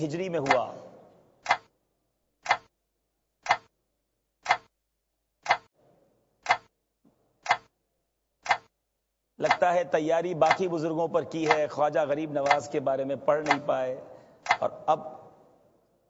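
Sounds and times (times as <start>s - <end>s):
speech: 0.0s - 0.8s, 9.6s - 15.2s
quiz timer clock ticking: 0.4s - 1.7s, 2.4s - 2.7s, 3.4s - 3.7s, 4.4s - 4.8s, 5.4s - 5.7s, 6.4s - 6.7s, 7.4s - 7.7s, 8.4s - 8.8s, 9.4s - 15.2s.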